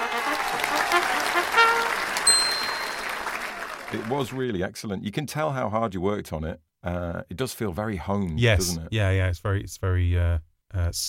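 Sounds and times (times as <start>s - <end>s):
round of applause: 0.0s - 4.5s
speech: 3.9s - 11.0s.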